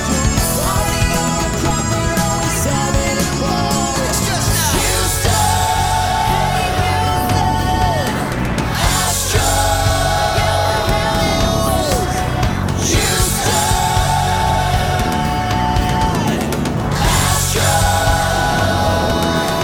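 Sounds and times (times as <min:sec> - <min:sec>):
acoustic full music mix: 0:00.0 - 0:19.6.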